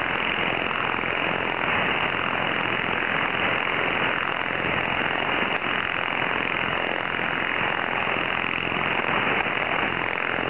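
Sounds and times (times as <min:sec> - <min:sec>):
noise: 0:00.0 - 0:10.4.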